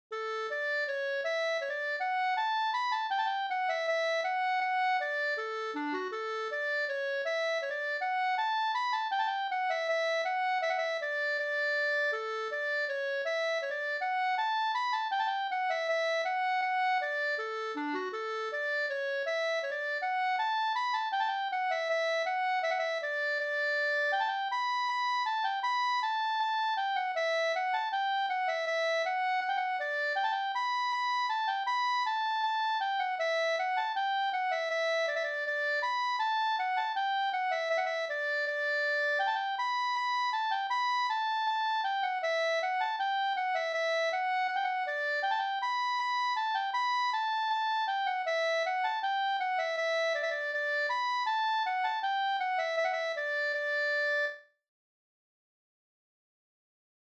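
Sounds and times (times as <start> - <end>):
Swedish bridal march folk tune from Jämtland: 0.3 - 54.3.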